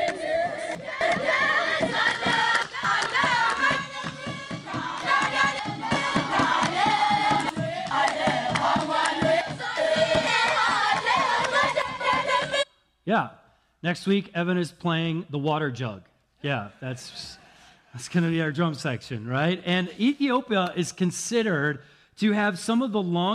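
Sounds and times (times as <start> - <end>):
young women singing a traditional Palm Sunday hymn: 0.0 - 12.6
steady rhythmic clapping: 0.0 - 12.7
speech: 13.1 - 17.4, 18.0 - 23.3.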